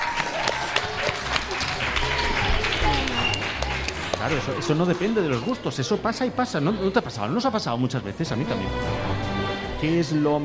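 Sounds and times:
applause: 0:00.0 - 0:05.5
speech: 0:04.2 - 0:10.4.

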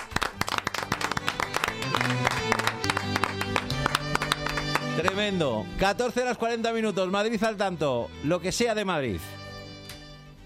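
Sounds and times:
studio audience applause: 0:00.0 - 0:05.2
speech: 0:05.2 - 0:09.4.

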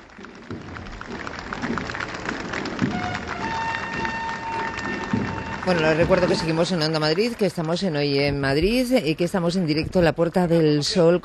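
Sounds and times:
crowd applause at military parade: 0:00.0 - 0:08.2
speech: 0:05.6 - 0:11.2.

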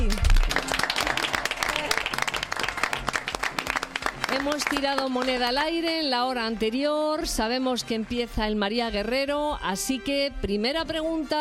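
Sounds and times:
students applauding: 0:00.0 - 0:05.6
speech: 0:04.5 - 0:11.3.

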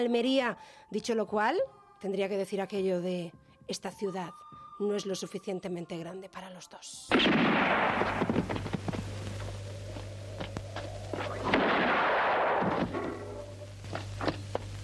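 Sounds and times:
speech: 0:00.0 - 0:08.8
revolver gunshots from western film music: 0:07.1 - 0:08.5, 0:11.4 - 0:13.5
steady low hum: 0:07.1 - 0:14.8.

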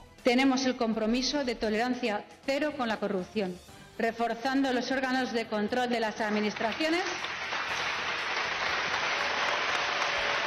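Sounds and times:
speech: 0:00.2 - 0:07.9
sarcastic applause from parliament deputies of the left-wing groups: 0:06.1 - 0:10.4.

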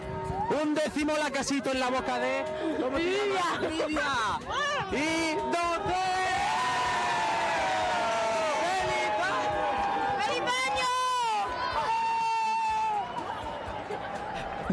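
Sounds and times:
large crowd shouting and cheering in a city square: 0:00.0 - 0:14.7
speech: 0:00.6 - 0:06.2.

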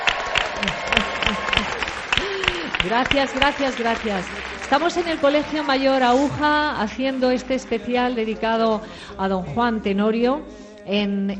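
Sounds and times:
applause for two sponsoring dental clinic doctors at a live event: 0:00.0 - 0:06.2
laughter: 0:00.0 - 0:08.7
speech: 0:02.8 - 0:11.3.

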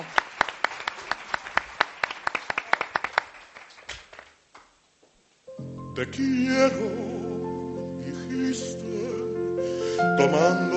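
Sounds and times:
short burst of applause from a few people: 0:00.0 - 0:04.7
speech: 0:06.0 - 0:07.2, 0:08.4 - 0:10.7.

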